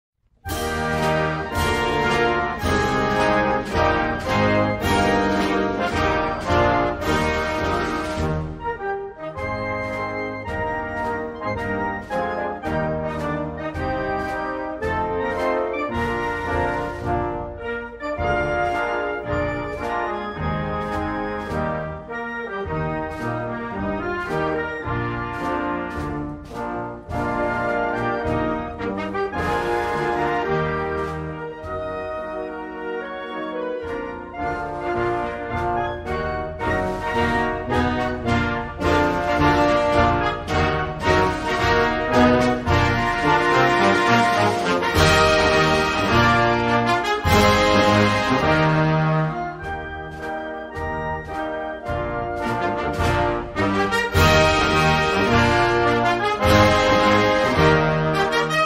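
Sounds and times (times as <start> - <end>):
national anthem: 0.5 - 58.6.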